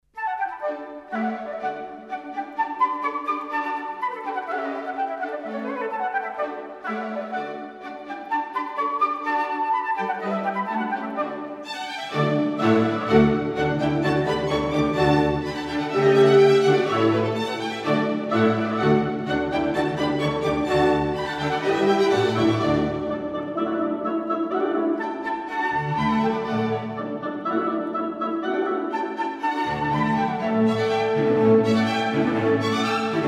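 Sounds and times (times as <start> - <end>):
flute concerto: 0.1 - 33.2.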